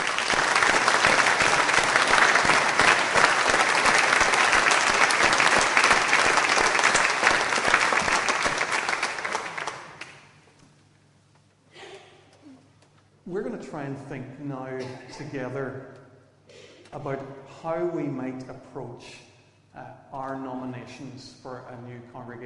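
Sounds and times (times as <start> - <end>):
audience applause: 0.0 - 10.2
speech: 14.1 - 16.0, 16.9 - 19.2, 19.8 - 22.4.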